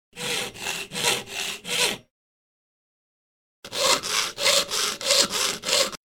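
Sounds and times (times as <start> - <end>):
saw cutting thin wood chips: 0.2 - 2.0, 3.7 - 6.0.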